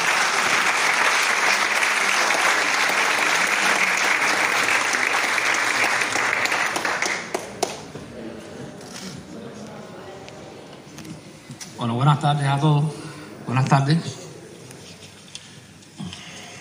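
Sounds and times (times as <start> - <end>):
audience applause: 0.0 - 8.0
speech: 11.8 - 14.2.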